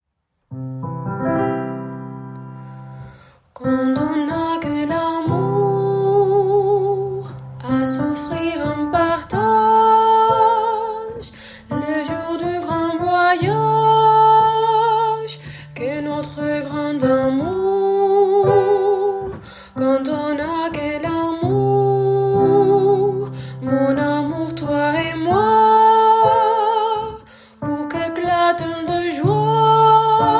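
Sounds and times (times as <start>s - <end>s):
soprano voice: 3.6s - 30.3s.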